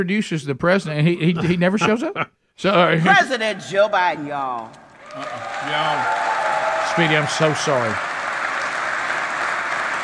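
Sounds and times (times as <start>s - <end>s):
speech: 0.0s - 8.1s
audience clapping: 4.4s - 10.0s.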